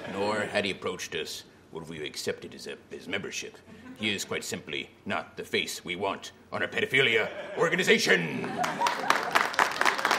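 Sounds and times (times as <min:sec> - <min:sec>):
laughter: 0:00.0 - 0:00.5, 0:07.0 - 0:10.1
speech: 0:00.2 - 0:09.1
audience clapping: 0:08.4 - 0:10.1.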